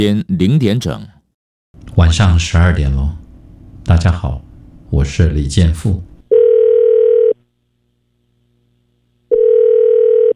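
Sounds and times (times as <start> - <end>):
speech: 0.0 - 1.2, 2.0 - 3.2, 3.9 - 6.1
telephone ringback tone: 6.3 - 7.4, 9.3 - 10.3.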